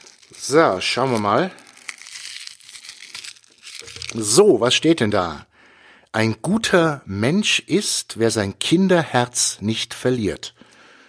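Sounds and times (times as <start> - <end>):
plastic wrapper crinkling as a fortune cookie is unwrapped: 0.0 - 4.5
speech: 0.4 - 1.6, 4.1 - 5.5, 6.1 - 10.7.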